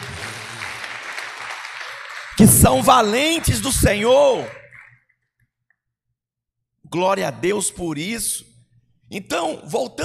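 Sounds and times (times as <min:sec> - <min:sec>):
audience applauding: 0:00.0 - 0:05.0
speech: 0:02.4 - 0:04.6, 0:06.9 - 0:08.5, 0:09.1 - 0:10.0.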